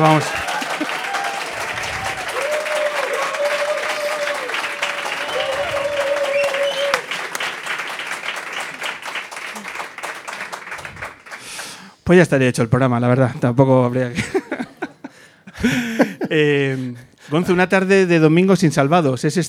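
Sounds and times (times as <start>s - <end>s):
speech: 0.0s - 0.4s, 12.1s - 14.4s, 15.6s - 19.4s
laughter: 0.0s - 11.3s, 14.1s - 17.0s
audience applause: 0.0s - 12.0s.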